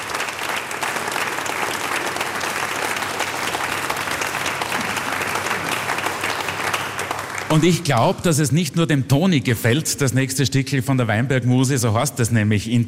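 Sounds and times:
audience applause: 0.0 - 8.0
speech: 7.6 - 12.8.

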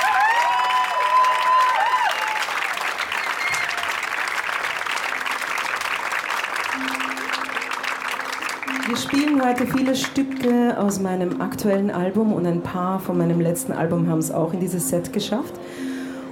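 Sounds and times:
audience applause: 0.0 - 11.0
speech: 9.0 - 15.9.

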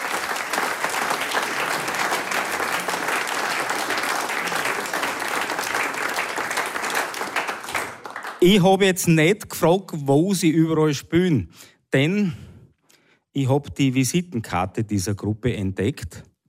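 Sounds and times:
applause: 0.0 - 8.7
speech: 8.4 - 12.4, 13.4 - 16.3.

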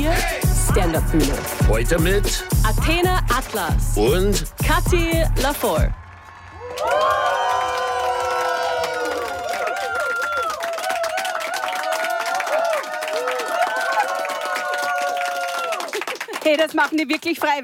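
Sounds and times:
speech: 0.9 - 6.0, 6.8 - 7.3, 16.5 - 17.6
live audience applause: 5.9 - 17.6
live audience cheering and whooping: 6.0 - 16.2.

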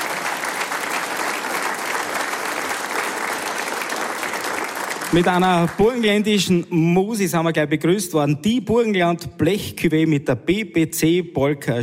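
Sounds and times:
audience applause: 0.0 - 6.2
speech: 5.1 - 11.8.

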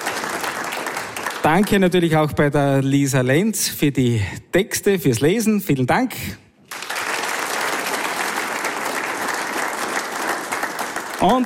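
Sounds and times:
audience applause: 0.0 - 2.0, 6.7 - 11.4
speech: 1.4 - 6.4, 11.2 - 11.4.

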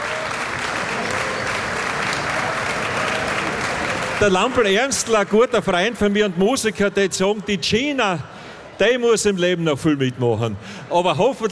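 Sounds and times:
audience applause: 0.0 - 5.9
speech: 4.2 - 11.5.

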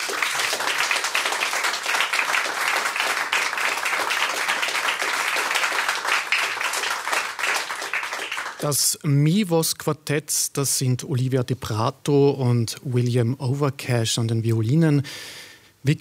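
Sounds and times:
audience applause: 0.0 - 8.6
speech: 8.6 - 16.0.

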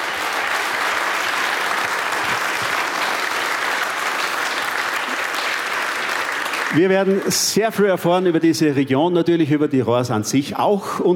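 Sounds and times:
audience applause: 0.0 - 7.9
speech: 6.7 - 11.1.

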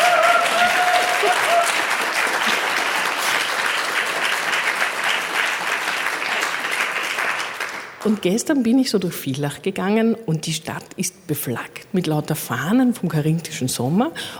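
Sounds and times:
audience applause at a stage event with an all-women panel: 0.0 - 8.2
speech: 8.0 - 14.3.

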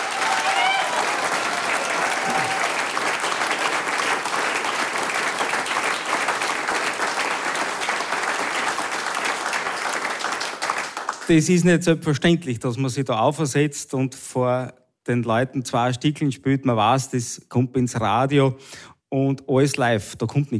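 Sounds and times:
whistles and cheers: 0.0 - 3.0
large audience applause: 0.0 - 11.3
speech: 11.3 - 20.5.

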